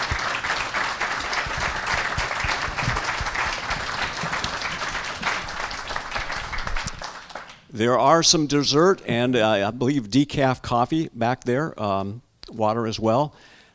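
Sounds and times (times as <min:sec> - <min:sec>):
audience applause for panel: 0:00.0 - 0:07.7
speech: 0:07.8 - 0:13.5.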